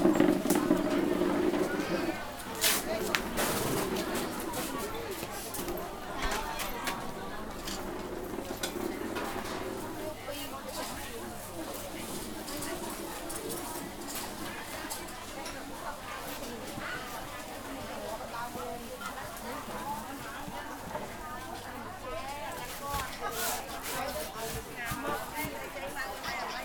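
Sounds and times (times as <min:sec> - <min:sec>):
people at a market in Phnom Penh Cambodia: 0:00.0 - 0:26.6.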